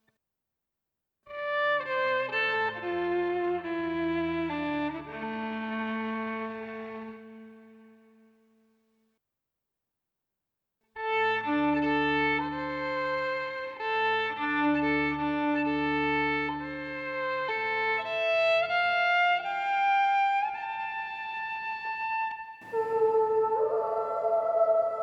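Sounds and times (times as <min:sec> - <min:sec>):
instrumental music soundscape: 0:01.3 - 0:08.6, 0:11.0 - 0:25.0.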